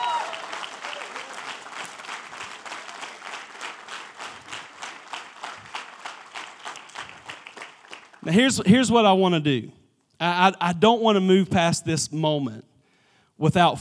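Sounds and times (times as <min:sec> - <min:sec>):
audience applauding: 0:00.0 - 0:08.6
speech: 0:08.2 - 0:12.7, 0:13.4 - 0:13.8.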